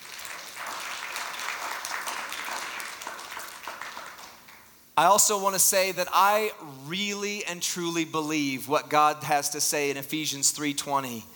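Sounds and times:
audience applause: 0.0s - 4.7s
speech: 5.0s - 11.3s.

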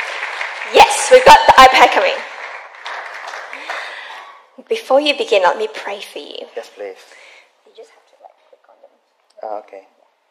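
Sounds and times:
audience applause: 0.0s - 4.3s
speech: 0.7s - 2.2s, 4.7s - 7.2s, 9.4s - 9.9s.

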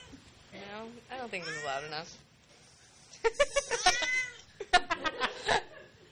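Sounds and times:
speech: 0.9s - 2.3s, 3.2s - 4.0s
cat meowing in high-pitched chirping calls: 1.4s - 1.9s, 3.8s - 4.5s
laughter: 3.2s - 6.1s.

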